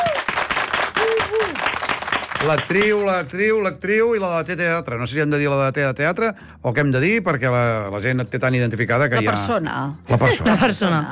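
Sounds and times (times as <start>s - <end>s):
people whooping and calling out: 0.0s - 1.8s
loud crowd applause welcoming a guest: 0.0s - 3.1s
speech: 2.4s - 11.1s.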